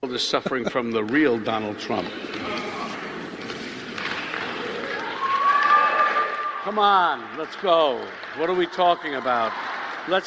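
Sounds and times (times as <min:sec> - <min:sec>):
speech: 0:00.0 - 0:02.7, 0:06.6 - 0:10.2
audience clapping: 0:03.9 - 0:10.2.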